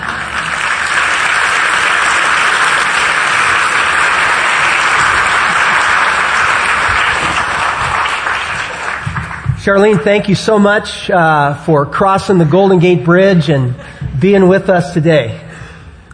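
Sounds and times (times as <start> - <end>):
audience applause: 0.0 - 10.1
speech: 9.6 - 15.4.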